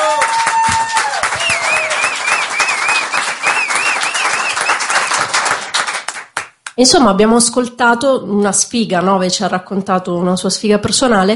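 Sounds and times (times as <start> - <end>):
audience applause: 0.0 - 6.6
speech: 6.8 - 11.3.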